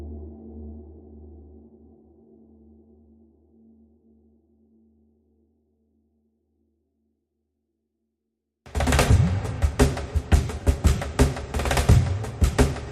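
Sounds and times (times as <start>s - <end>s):
drums: 8.7s - 12.9s.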